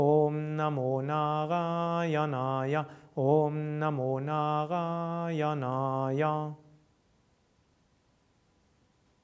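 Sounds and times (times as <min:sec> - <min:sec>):
fast mantra recitation: 0:00.0 - 0:06.7.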